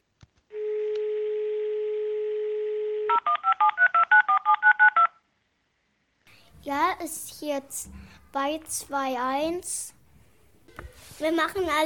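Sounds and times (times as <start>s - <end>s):
steady low dial tone: 0.5s - 5.0s
speech: 6.6s - 10.0s, 11.2s - 11.8s.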